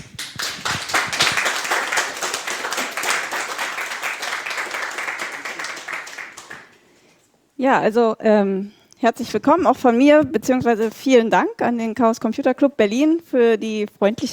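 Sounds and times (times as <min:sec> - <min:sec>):
audience applause at a talk: 0:00.0 - 0:06.8
speech: 0:07.6 - 0:14.3.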